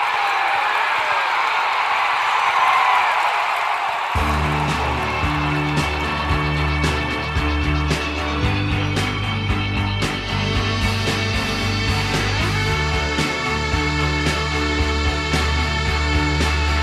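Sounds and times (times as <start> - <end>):
stadium crowd roar: 0.0 - 16.8
music with deep pulsing bass notes: 4.2 - 16.8.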